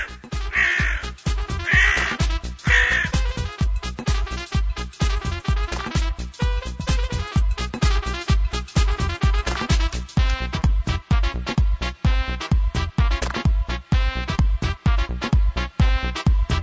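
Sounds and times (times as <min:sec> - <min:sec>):
crow cawing: 0:00.0 - 0:01.1, 0:01.7 - 0:03.2
rapid rhythmic pulses: 0:00.0 - 0:16.6.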